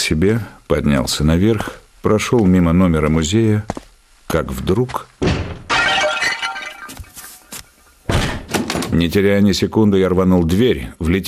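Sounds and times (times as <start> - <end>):
speech: 0.1 - 5.5, 9.0 - 11.2
ceramic vase shattering: 5.7 - 7.5.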